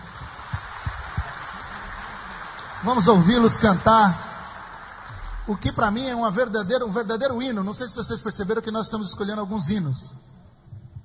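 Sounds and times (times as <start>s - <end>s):
crowd applause: 0.0s - 6.9s
speech: 2.8s - 4.2s, 5.5s - 10.3s.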